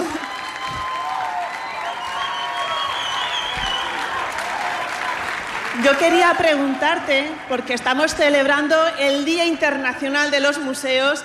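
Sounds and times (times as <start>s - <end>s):
audience applause: 0.0s - 7.5s
faint cheering and whistles: 0.1s - 5.4s
speech: 5.8s - 11.2s.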